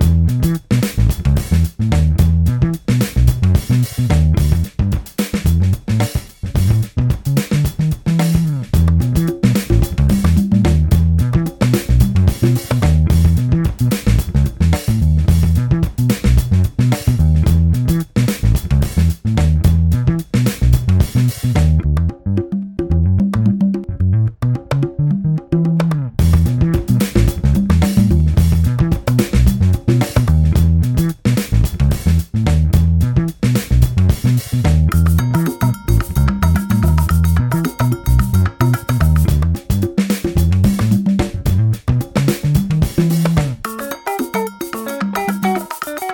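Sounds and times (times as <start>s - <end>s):
Senegal Afro Beats music: 0.2s - 21.8s, 22.4s - 46.1s.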